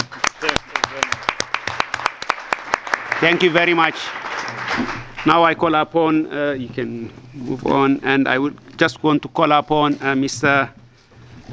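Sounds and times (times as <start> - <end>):
scattered hand clapping from a workshop audience: 0.0 - 5.4
speech: 3.2 - 4.2, 4.8 - 10.8.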